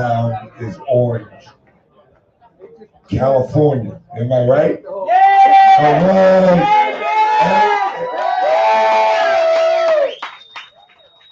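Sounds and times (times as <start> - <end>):
speech: 0.0 - 1.6, 2.8 - 5.2, 5.8 - 6.8
large crowd roaring and cheering: 5.0 - 11.2.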